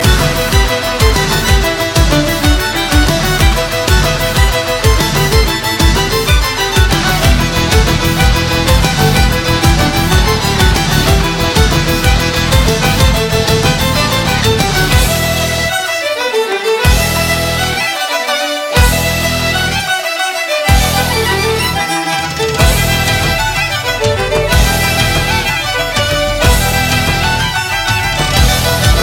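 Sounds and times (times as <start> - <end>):
Irish dance music: 0.0 - 29.0.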